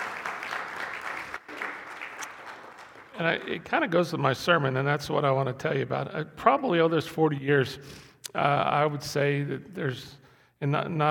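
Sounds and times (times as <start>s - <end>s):
audience applause: 0.0s - 3.8s
speech: 3.2s - 11.0s.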